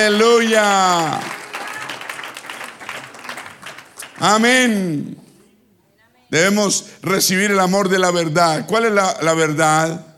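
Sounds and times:
speech: 0.0 - 1.4, 4.2 - 5.2, 6.3 - 10.1
audience applauding: 0.0 - 4.6.

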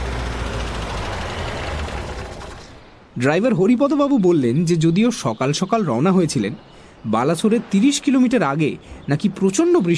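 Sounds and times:
car engine rumbling as the vehicle pulls up in the morning: 0.0 - 3.1
broadband road noise: 0.0 - 9.9
speech: 3.2 - 9.9.

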